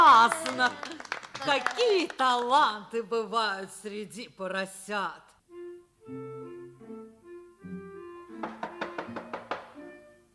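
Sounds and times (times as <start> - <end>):
speech: 0.2 - 5.3, 6.1 - 6.4
knocking: 8.4 - 9.8.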